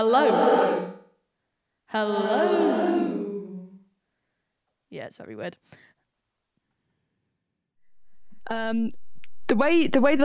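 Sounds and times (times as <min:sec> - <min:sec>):
speech: 0:00.0 - 0:01.0, 0:01.9 - 0:03.0, 0:04.9 - 0:05.9, 0:08.4 - 0:10.2
spoken word with reverse reverb: 0:00.0 - 0:01.0, 0:01.9 - 0:03.8.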